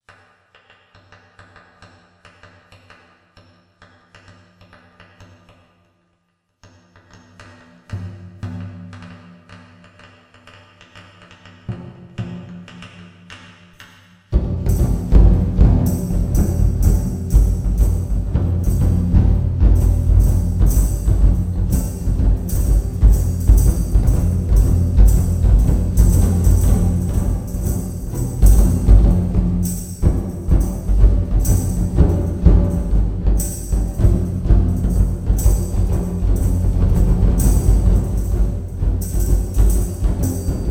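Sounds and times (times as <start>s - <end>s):
trommel experiment: 14.3s - 40.7s.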